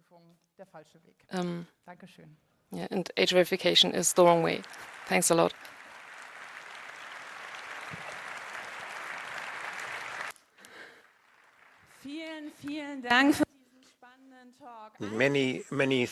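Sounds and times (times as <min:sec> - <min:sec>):
speech: 0:00.2 - 0:05.8, 0:12.4 - 0:13.4, 0:14.5 - 0:16.1
audience applause after a talk: 0:03.6 - 0:12.2.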